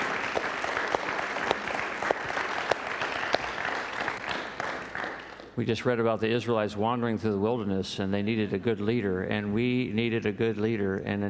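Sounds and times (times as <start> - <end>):
audience applause: 0.0 - 5.6
speech: 5.6 - 11.2.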